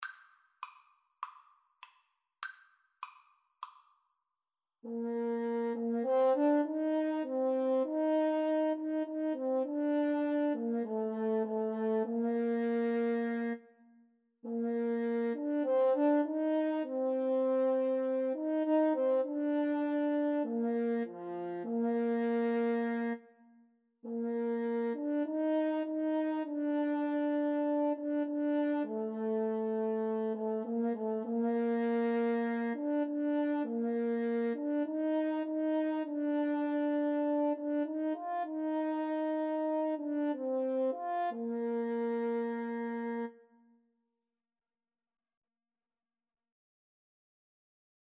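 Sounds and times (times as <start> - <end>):
French horn: 4.8 - 13.7, 14.4 - 23.3, 24.0 - 43.4
clarinet: 4.9 - 43.8.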